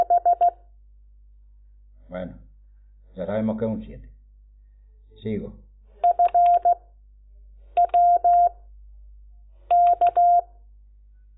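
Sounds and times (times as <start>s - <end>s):
telephone touch-tone dialing beeps: 0.0s - 0.6s, 6.0s - 6.8s, 7.8s - 8.5s, 9.7s - 10.5s
speech: 2.1s - 2.5s, 3.2s - 4.1s, 5.2s - 5.6s.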